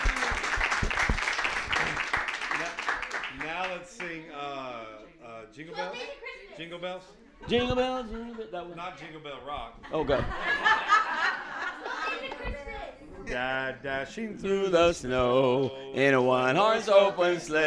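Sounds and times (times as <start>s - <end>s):
church congregation applause: 0.0s - 4.2s
voices and chuckling: 4.6s - 13.5s
speech: 5.6s - 11.2s, 13.3s - 17.6s.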